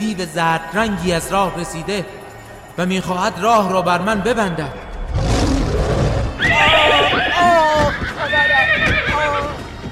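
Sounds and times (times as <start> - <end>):
speech: 0.1 - 2.2, 2.8 - 4.8
horse whinnying: 6.1 - 9.6
galloping hoofbeats: 6.4 - 9.9.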